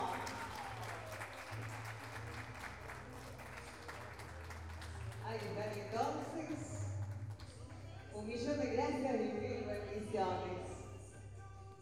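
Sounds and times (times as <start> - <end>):
audience applause at a pluricultural gathering of indigenous peoples: 0.0 - 7.7
speech: 5.3 - 6.8, 8.2 - 10.6.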